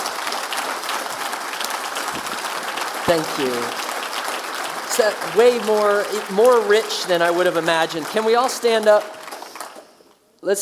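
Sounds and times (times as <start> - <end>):
audience applause: 0.0 - 10.1
speech: 3.1 - 3.9, 5.0 - 9.2.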